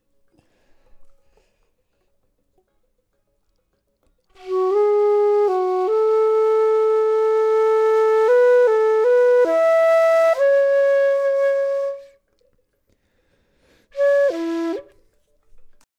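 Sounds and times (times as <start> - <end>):
flute: 4.3 - 12.5, 13.9 - 15.9.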